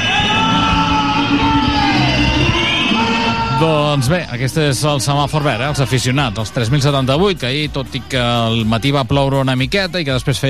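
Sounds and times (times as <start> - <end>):
stadium crowd whistling at final whistle: 0.0 - 7.4
stadium crowd roaring and shouting: 0.0 - 10.4
speech: 3.6 - 10.4.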